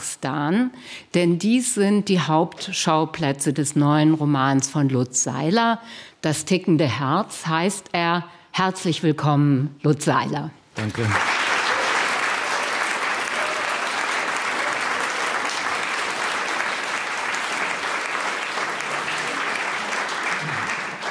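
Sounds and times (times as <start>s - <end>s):
speech: 0.2s - 11.4s
audience applauding at a literary event at the Literarisches Kolloquium: 10.8s - 21.1s.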